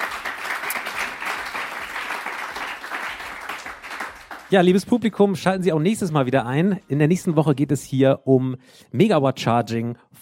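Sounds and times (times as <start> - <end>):
audience applause: 0.0 - 4.8
speech: 4.5 - 10.2.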